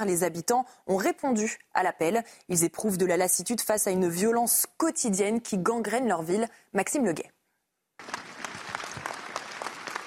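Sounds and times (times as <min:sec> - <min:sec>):
speech: 0:00.0 - 0:07.4
crowd applauding at a rally: 0:08.0 - 0:10.0.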